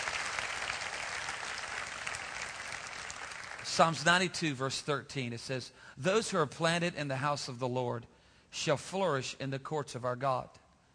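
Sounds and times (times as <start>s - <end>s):
audience clapping hands: 0.0s - 4.0s
speech: 3.7s - 10.6s.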